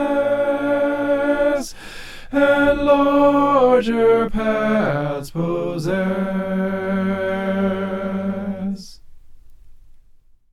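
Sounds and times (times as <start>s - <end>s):
soprano singing: 0.0s - 1.7s, 2.3s - 9.0s.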